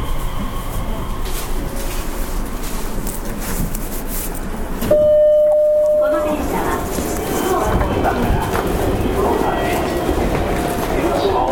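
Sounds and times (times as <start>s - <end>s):
Nishitetsu 3000 series train running: 0.0s - 11.4s
clear high tone: 4.9s - 6.7s.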